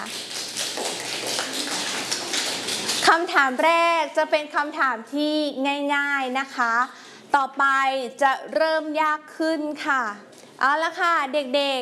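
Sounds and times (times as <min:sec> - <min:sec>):
group of children clapping: 0:00.0 - 0:03.1
speech: 0:03.1 - 0:11.8.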